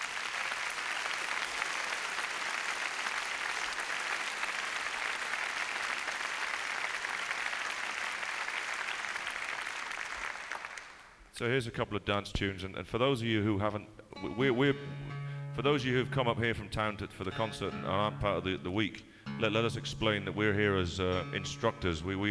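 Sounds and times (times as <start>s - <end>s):
audience applause at a folk concert: 0.0s - 11.2s
speech: 11.4s - 15.0s, 15.6s - 22.2s.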